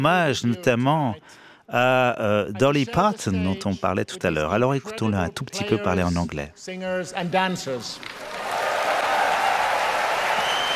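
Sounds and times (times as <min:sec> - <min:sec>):
speech: 0:00.0 - 0:08.4
concert audience applause: 0:08.0 - 0:10.7.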